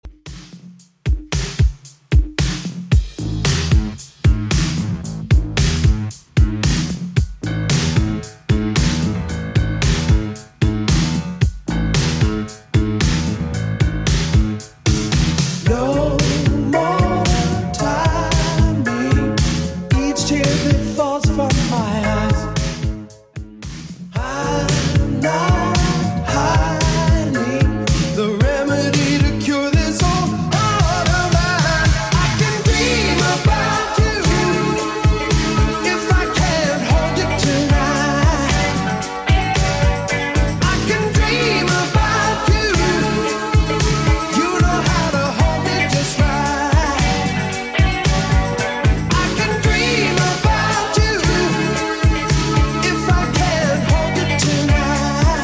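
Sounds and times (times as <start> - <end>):
80s style beat at 113 bpm: 0.0 - 55.4.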